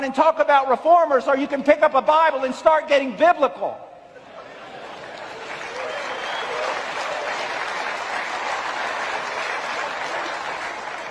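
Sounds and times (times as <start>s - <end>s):
speech: 0.0s - 3.9s
laughter: 4.1s - 5.8s
audience applause: 4.7s - 11.0s.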